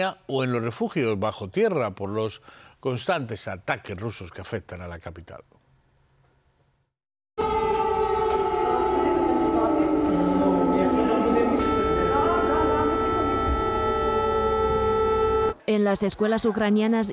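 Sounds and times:
speech: 0.0 - 5.6, 15.7 - 17.1
air raid alarm siren: 7.4 - 15.6.

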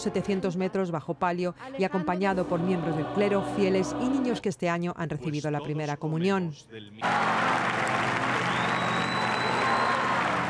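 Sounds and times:
speech: 0.0 - 8.0
large crowd applauding at outdoor papal mass: 7.0 - 10.4.

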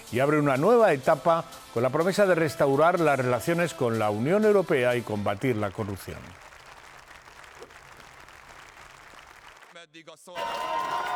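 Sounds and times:
speech: 0.1 - 6.4
applause and cheers for Peter Maillard arriving at Parliament: 4.8 - 11.1.

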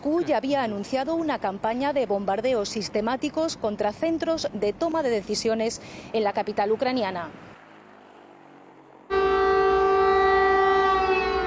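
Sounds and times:
speech: 0.0 - 7.5
air raid warning siren: 9.1 - 11.4.

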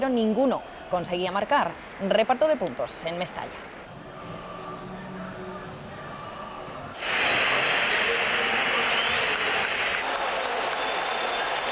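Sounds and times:
speech: 0.0 - 3.8
crowd whistling at San Mamés: 7.0 - 11.7
stadium applause at San Mamés: 7.0 - 11.7.

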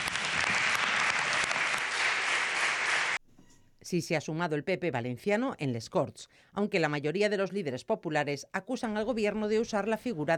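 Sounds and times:
crowd applause: 0.0 - 3.2
speech: 3.9 - 10.3.

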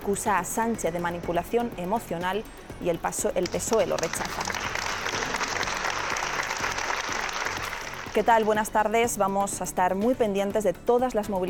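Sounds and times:
speech: 0.0 - 4.5, 8.2 - 11.4
applause in city council chamber: 3.8 - 8.2.

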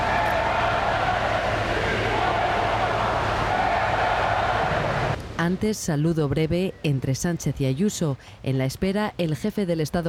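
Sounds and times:
crowd booing at arrival: 0.0 - 5.2
speech: 5.5 - 10.0.

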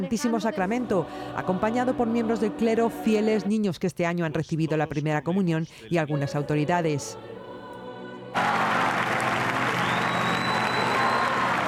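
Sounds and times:
people singing a hymn: 0.0 - 3.6, 5.8 - 9.2
speech: 0.0 - 7.4
crowd applauding the Pope: 8.4 - 11.6.

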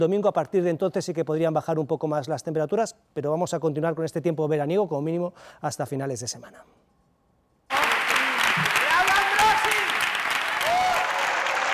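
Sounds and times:
speech: 0.0 - 6.9
long standing ovation applause at film festival: 7.7 - 11.7.

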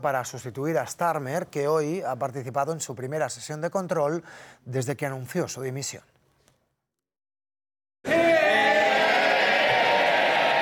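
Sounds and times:
speech: 0.0 - 6.1
parliament benches cheering and shouting in an ovation: 8.1 - 10.6.

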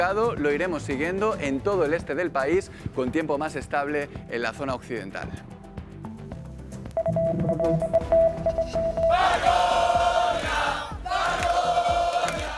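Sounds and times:
speech: 0.0 - 5.6, 7.3 - 10.0
protest crowd at the Barcelona camp shouting shame: 9.1 - 12.5.

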